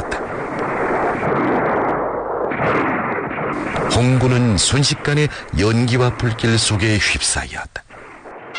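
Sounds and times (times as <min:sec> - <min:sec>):
rapid gunfire: 0:00.1 - 0:05.2
speech: 0:04.0 - 0:07.8.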